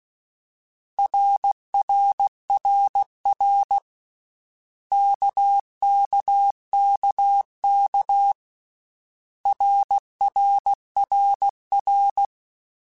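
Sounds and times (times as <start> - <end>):
Morse code CW basic letter groups: 1.0 - 3.9, 4.9 - 8.4, 9.5 - 12.3.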